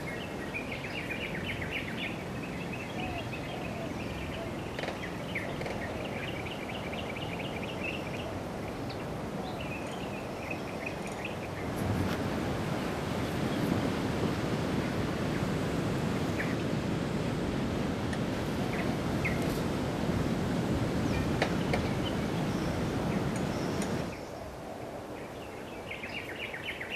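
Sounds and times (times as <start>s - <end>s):
birds of Indonesia calling: 0.0s - 17.2s, 18.1s - 26.9s.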